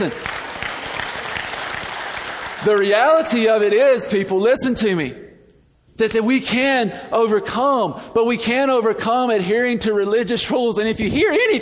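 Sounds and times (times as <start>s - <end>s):
speech: 0.0s - 0.3s, 2.6s - 5.2s, 6.0s - 11.5s
audience clapping: 0.0s - 3.4s.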